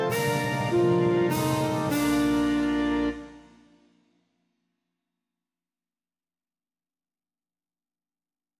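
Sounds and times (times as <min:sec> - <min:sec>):
saxophone melody: 0:00.0 - 0:03.7.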